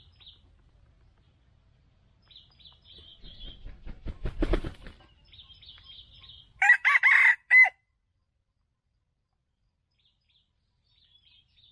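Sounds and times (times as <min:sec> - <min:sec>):
red junglefowl crow: 0:06.6 - 0:07.8.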